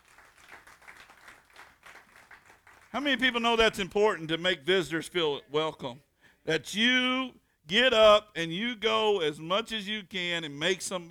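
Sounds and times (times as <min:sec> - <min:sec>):
church audience applause: 0:00.0 - 0:03.0
speech: 0:02.9 - 0:11.0.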